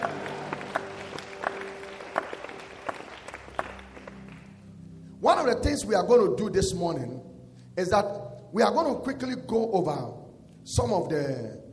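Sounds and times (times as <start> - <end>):
audience clapping hands: 0.0 - 4.8
speech: 5.4 - 11.6.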